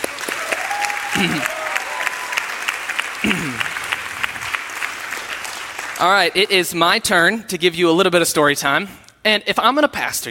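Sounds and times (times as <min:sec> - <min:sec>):
audience clapping: 0:00.0 - 0:07.0
brief cheers: 0:00.3 - 0:02.7
speech: 0:01.2 - 0:01.6, 0:06.0 - 0:10.2.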